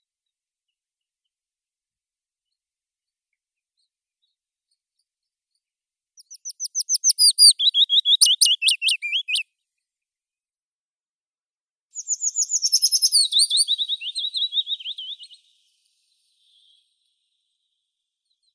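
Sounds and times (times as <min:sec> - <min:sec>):
Phylloscopus trochilus willow warbler singing: 0:06.2 - 0:09.4, 0:12.0 - 0:17.0.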